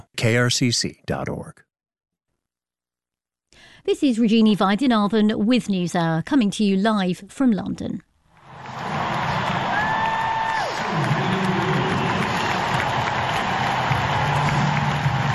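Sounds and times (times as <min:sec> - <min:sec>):
speech: 0:00.2 - 0:01.7, 0:03.5 - 0:08.8
tennis stadium crowd cheering at the US Open in New York: 0:08.4 - 0:15.3.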